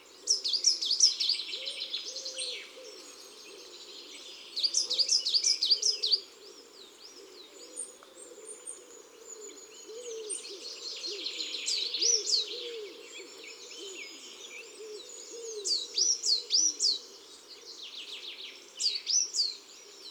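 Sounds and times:
coal tit song: 0:00.0 - 0:20.1.

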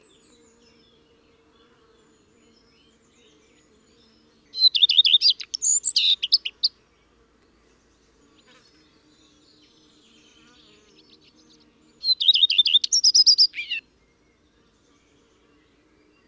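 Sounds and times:
common redstart singing in a garden: 0:03.9 - 0:06.7, 0:12.0 - 0:13.8.

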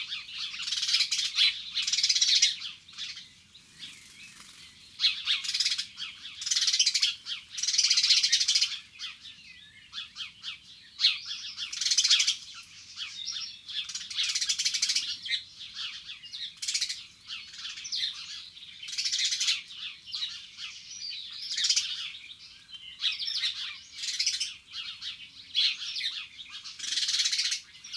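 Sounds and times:
house sparrows chirping and twittering: 0:00.0 - 0:27.9.

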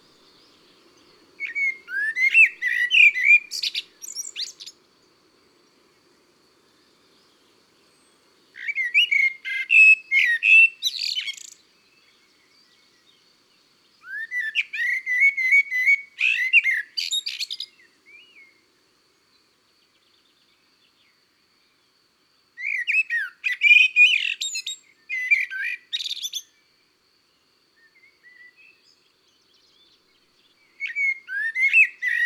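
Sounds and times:
Eurasian blackbird: 0:00.0 - 0:04.8, 0:08.6 - 0:13.2, 0:14.0 - 0:18.5, 0:22.6 - 0:26.6, 0:27.8 - 0:32.2.

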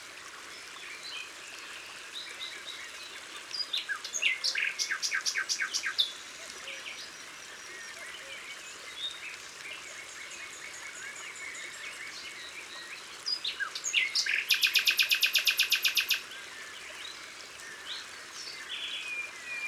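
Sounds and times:
common nightingale song: 0:02.4 - 0:19.6.

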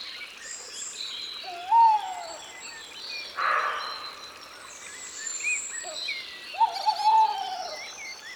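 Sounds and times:
tawny owl calls: 0:01.5 - 0:02.6, 0:03.4 - 0:04.2, 0:06.6 - 0:08.0.

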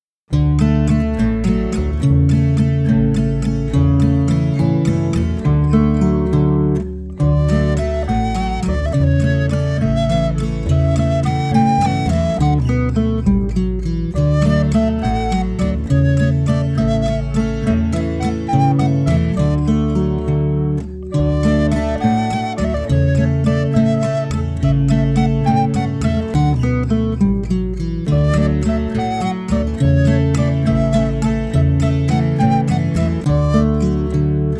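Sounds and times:
instrumental music: 0:00.3 - 0:34.5.

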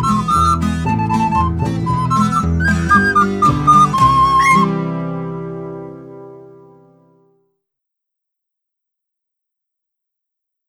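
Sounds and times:
instrumental music: 0:00.0 - 0:07.3.

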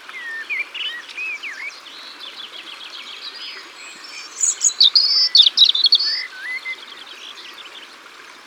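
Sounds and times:
European robin singing: 0:00.1 - 0:01.8, 0:03.2 - 0:06.8.

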